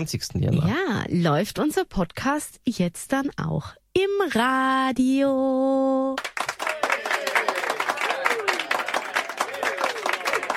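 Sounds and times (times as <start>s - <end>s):
speech: 0.0s - 6.3s
inserted cheering and applause sound effect: 6.3s - 10.5s.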